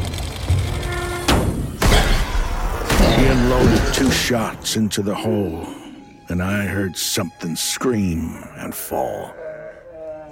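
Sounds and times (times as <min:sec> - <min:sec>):
heavy wooden hatch flung open with a bang: 0:00.9 - 0:04.4
speech: 0:03.3 - 0:09.4.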